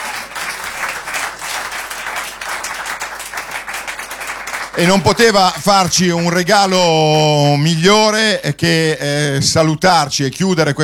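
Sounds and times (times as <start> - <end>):
audience applause: 0.0 - 6.8
speech: 4.8 - 10.8.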